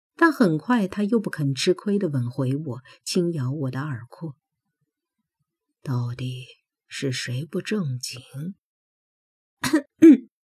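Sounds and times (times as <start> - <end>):
speech: 0.2 - 4.4, 5.8 - 8.6, 9.6 - 10.2
person coughing: 9.6 - 10.3.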